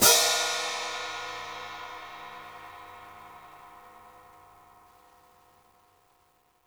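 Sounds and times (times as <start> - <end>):
open hi-hat: 0.0 - 4.1.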